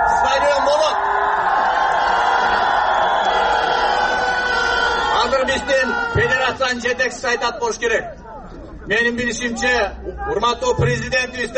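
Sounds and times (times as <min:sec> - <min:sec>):
crowd shouting stadium in unison: 0:00.0 - 0:06.6
speech: 0:05.6 - 0:08.2, 0:08.9 - 0:11.5.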